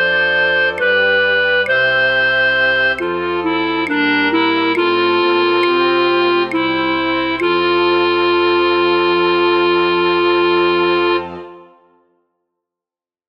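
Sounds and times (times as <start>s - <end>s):
flute orchestra: 0.0s - 12.2s.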